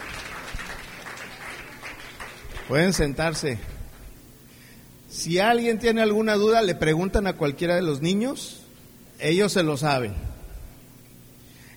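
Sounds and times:
audience applauding a child at a church gathering: 0.0 - 4.0
speech: 2.7 - 3.8, 5.2 - 8.6, 9.2 - 10.3.

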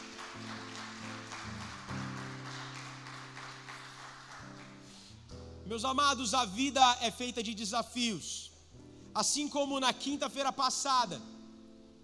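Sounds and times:
audience applause: 0.0 - 5.0
speech: 5.7 - 8.5, 9.2 - 11.3.

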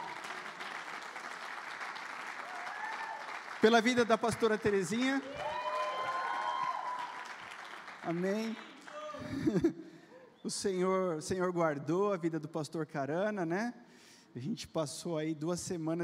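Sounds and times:
audience applauding: 0.0 - 9.3
speech: 3.6 - 5.6, 8.0 - 9.8, 10.4 - 16.0
laughter: 9.0 - 9.8.

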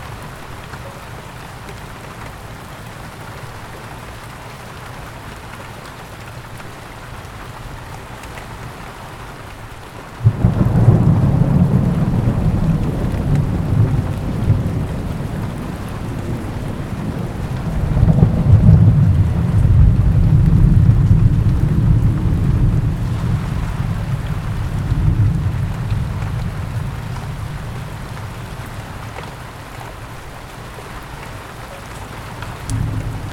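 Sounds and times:
rain on a patio: 0.0 - 33.3
deep heavy rumble like thunder: 10.2 - 29.7, 32.0 - 33.3.

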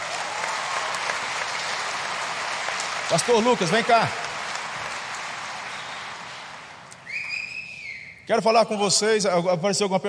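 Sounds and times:
audience applause: 0.0 - 7.4
speech: 3.1 - 4.2, 8.3 - 10.0.

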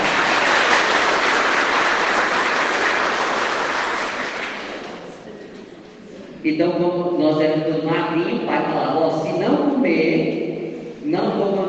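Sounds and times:
audience clapping: 0.0 - 5.2
speech: 6.4 - 10.4.

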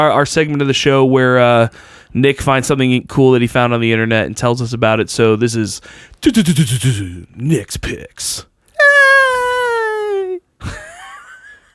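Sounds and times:
speech: 0.0 - 8.5, 10.6 - 10.8
woman screaming: 8.8 - 10.4.

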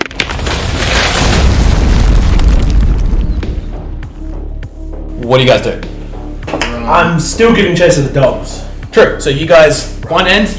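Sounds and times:
avalanche crashing down a cliff: 0.0 - 3.7
speech: 5.3 - 5.9, 6.9 - 10.5.

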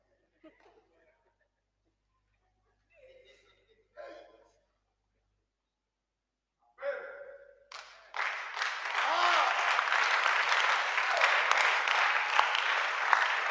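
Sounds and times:
laughter: 0.0 - 4.5
audience clapping: 7.7 - 13.5.

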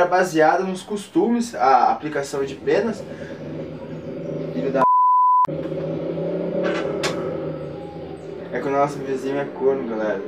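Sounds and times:
speech: 0.0 - 3.5, 4.6 - 4.8, 8.6 - 10.2
motorcycle engine revving: 1.6 - 4.8, 5.5 - 10.2.

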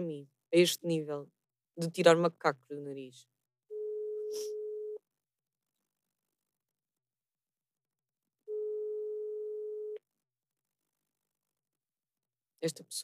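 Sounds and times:
speech: 0.0 - 3.3, 4.3 - 4.6, 12.6 - 13.0
telephone busy signal: 8.5 - 10.0.

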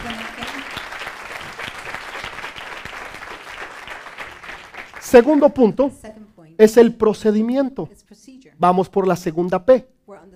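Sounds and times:
audience applauding: 0.0 - 5.6
speech: 5.1 - 10.3.

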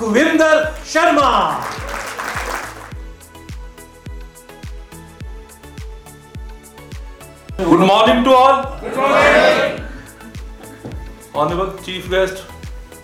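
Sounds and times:
speech: 0.0 - 1.7, 7.6 - 9.8, 11.4 - 12.5
audience applause: 0.8 - 3.0.

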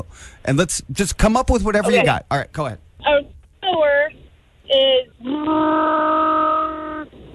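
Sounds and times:
speech: 0.0 - 3.2
voice imitating a motor engine: 5.0 - 7.2.

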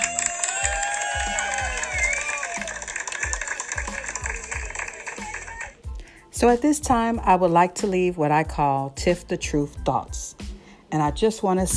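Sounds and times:
crowd applauding and cheering: 0.0 - 5.9
steady thumping beat of music: 0.0 - 11.7
speech: 6.4 - 11.7.

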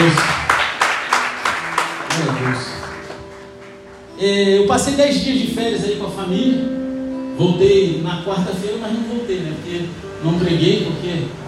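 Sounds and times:
audience applause: 0.0 - 4.0
speech: 4.2 - 6.8, 7.4 - 11.4.

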